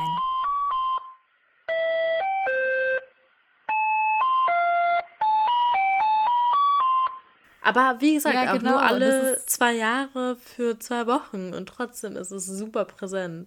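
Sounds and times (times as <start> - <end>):
ice cream vendor's repeating melody: 0.0 - 7.3
speech: 7.7 - 13.4.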